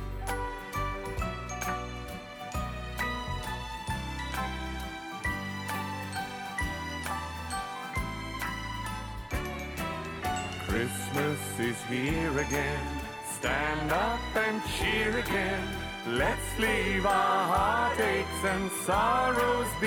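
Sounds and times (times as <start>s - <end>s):
Christmas song: 0.0s - 19.8s
jingling bells: 0.0s - 19.8s
speech: 10.8s - 19.8s.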